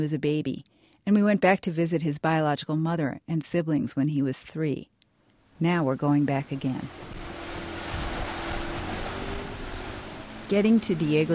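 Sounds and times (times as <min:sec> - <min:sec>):
speech: 0:00.0 - 0:05.0, 0:05.6 - 0:07.2, 0:10.5 - 0:11.3
boat crossing Lake Atitlan, a large volcanic lake: 0:05.6 - 0:11.3
water washing: 0:05.6 - 0:11.3
low hum: 0:06.0 - 0:11.3
rushing wind-like noise: 0:06.9 - 0:11.3.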